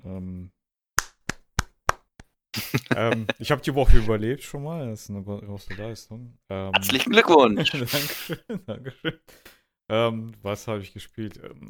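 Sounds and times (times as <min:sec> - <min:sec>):
hand clapping: 0:01.0 - 0:03.4
laughter: 0:02.6 - 0:03.6, 0:06.8 - 0:09.2
speech: 0:02.8 - 0:11.6.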